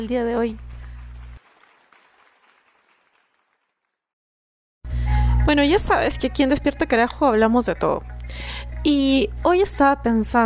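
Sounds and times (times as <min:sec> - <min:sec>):
speech: 0:00.0 - 0:00.7, 0:05.5 - 0:10.4
applause: 0:00.0 - 0:04.1.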